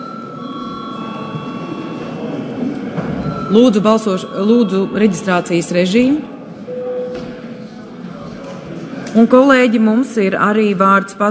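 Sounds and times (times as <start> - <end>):
parliament chamber electric bell ringing: 0.0 - 2.4, 3.2 - 6.0
speech: 3.5 - 6.4, 9.2 - 11.3.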